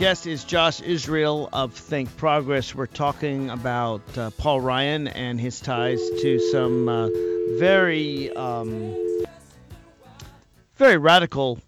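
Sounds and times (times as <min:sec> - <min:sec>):
speech: 0:00.0 - 0:09.0, 0:10.8 - 0:11.6
telephone dial tone on a phone line: 0:05.8 - 0:09.3.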